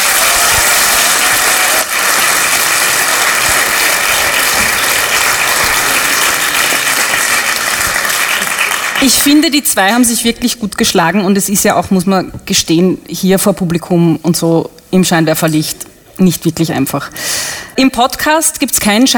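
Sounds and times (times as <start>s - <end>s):
audience applause: 0.0s - 9.2s
speech: 9.1s - 19.1s.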